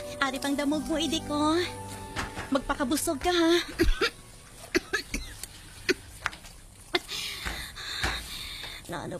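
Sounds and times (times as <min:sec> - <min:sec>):
speech: 0:00.2 - 0:01.8, 0:02.5 - 0:04.2, 0:08.9 - 0:09.1
coughing: 0:03.6 - 0:06.1.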